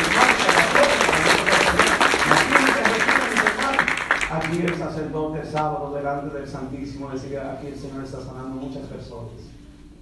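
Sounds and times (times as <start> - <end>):
audience applause: 0.0 - 4.8
speech: 4.6 - 9.6.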